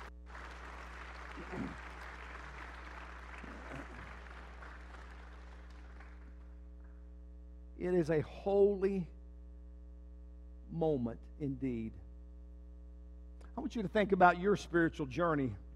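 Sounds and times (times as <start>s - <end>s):
crowd of people clapping steadily: 0.0s - 6.5s
low electrical hum: 0.0s - 15.7s
speech: 1.5s - 1.8s, 7.8s - 9.2s, 10.7s - 12.0s, 13.6s - 15.6s.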